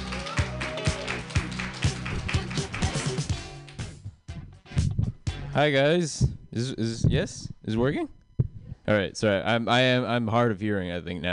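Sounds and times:
audience clapping: 0.0s - 3.9s
speech: 5.6s - 8.2s, 8.9s - 11.3s.

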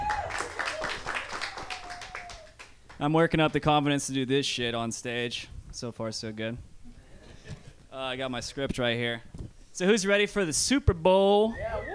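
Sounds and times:
audience clapping at a comedy open mic night: 0.0s - 3.1s
speech: 3.0s - 6.7s, 8.0s - 11.9s.

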